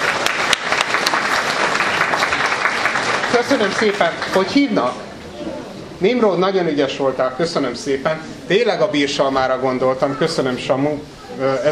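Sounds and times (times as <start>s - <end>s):
audience applause: 0.0s - 4.7s
speech: 3.4s - 5.0s, 6.0s - 11.7s.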